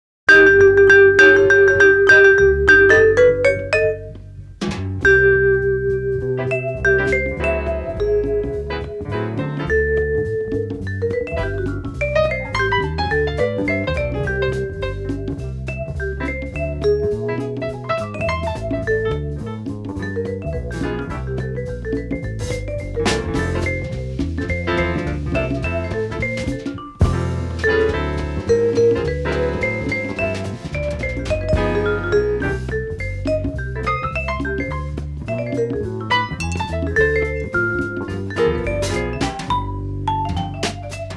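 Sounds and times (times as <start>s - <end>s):
jazz music: 0.3s - 41.1s.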